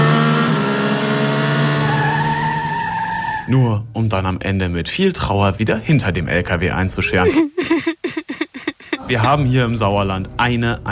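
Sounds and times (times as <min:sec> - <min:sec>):
car accelerating hard: 0:00.0 - 0:03.3
speech: 0:03.5 - 0:07.9, 0:09.1 - 0:10.9
laughter: 0:07.2 - 0:09.6.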